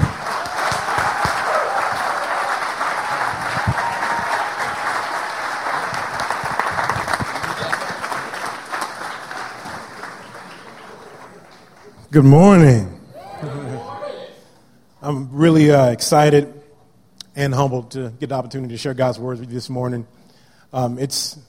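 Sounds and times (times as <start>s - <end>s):
audience applause welcoming a guest preacher: 0.0s - 12.0s
speech: 12.1s - 12.9s, 15.4s - 16.6s, 17.4s - 21.4s.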